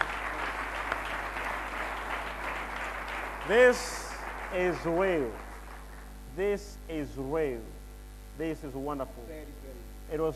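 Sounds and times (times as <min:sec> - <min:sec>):
audience clapping: 0:00.0 - 0:06.2
speech: 0:03.5 - 0:05.4, 0:06.4 - 0:07.8, 0:08.4 - 0:10.3.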